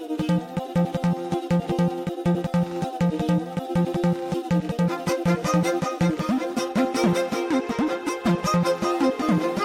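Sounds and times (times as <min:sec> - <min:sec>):
background music ringtone: 0:00.2 - 0:09.6.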